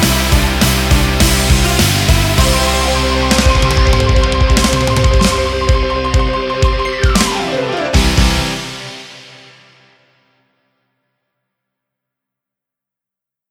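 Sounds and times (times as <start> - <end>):
music in C major: 0.0 - 10.2.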